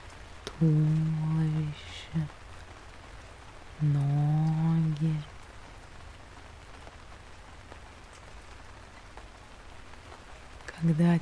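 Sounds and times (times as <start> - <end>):
steady soft rain falling in a park: 0.0 - 11.1
speech: 0.6 - 2.4, 3.8 - 4.2, 10.9 - 11.1.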